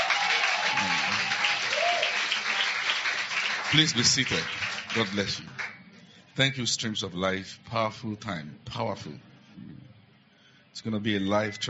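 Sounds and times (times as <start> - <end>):
audience applauding: 0.0 - 5.8
speech: 3.7 - 5.6, 6.4 - 9.8, 10.8 - 11.6.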